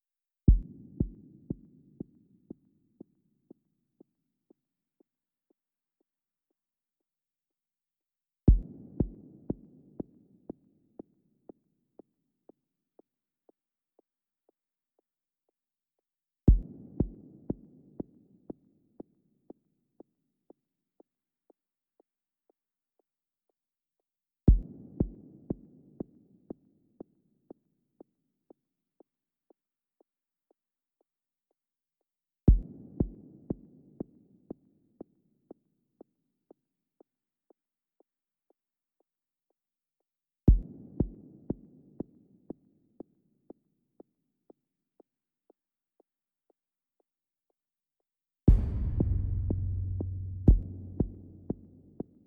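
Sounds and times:
percussion: 0.5 - 2.2, 8.5 - 10.6, 16.5 - 19.1, 24.5 - 26.2, 32.5 - 34.6, 40.5 - 42.6, 48.5 - 52.2.

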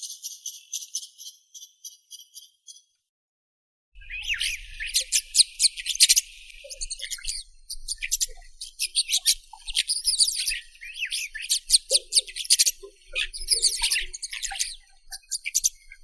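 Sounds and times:
rosy starling Sturnus roseus: 4.0 - 15.7.

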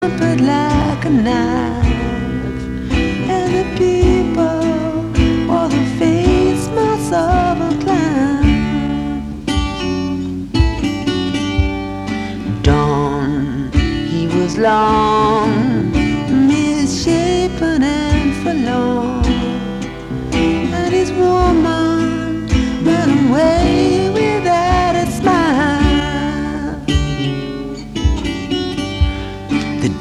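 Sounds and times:
acoustic guitar: 0.0 - 29.9
bass: 0.0 - 29.9.

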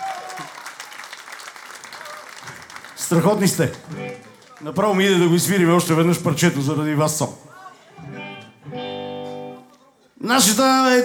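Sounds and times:
audience applause at a live music show: 0.0 - 5.7
speech: 3.1 - 7.5, 10.3 - 11.0.

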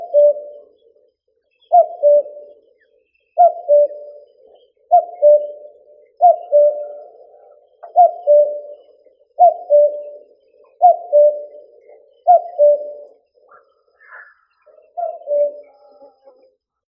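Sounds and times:
common cuckoo Cuculus canorus calling: 0.0 - 16.6.

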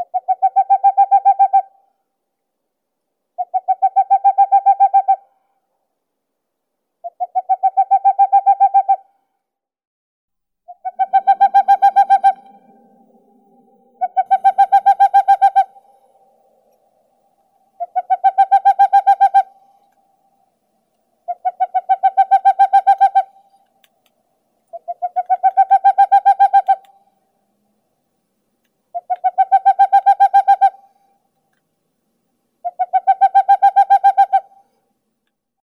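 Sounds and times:
Aegolius funereus calling: 0.0 - 1.8, 3.4 - 5.3, 7.0 - 9.1, 10.7 - 20.4, 21.2 - 23.9, 24.7 - 27.1, 28.9 - 31.1, 32.6 - 34.7.

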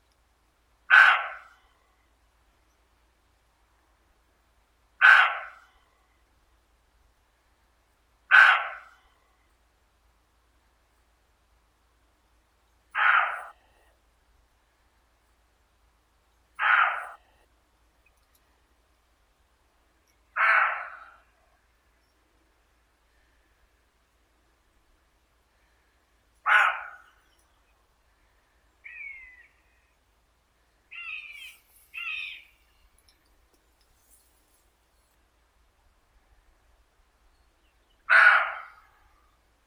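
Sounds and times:
European roe deer Capreolus capreolus: 0.9 - 1.9, 5.0 - 6.1, 8.3 - 9.4, 12.9 - 14.0, 16.6 - 17.5, 20.0 - 22.0, 25.5 - 30.0, 30.9 - 33.2, 38.0 - 39.3.

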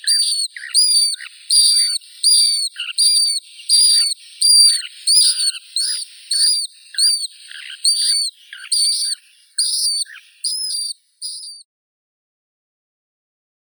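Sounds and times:
European golden plover Pluvialis apricaria calling: 0.0 - 11.6.

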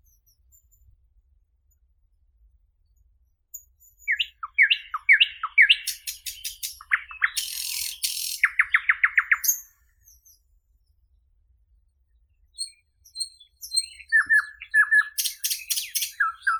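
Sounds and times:
common nightingale Luscinia luscinia singing: 3.6 - 10.4, 12.6 - 16.5.

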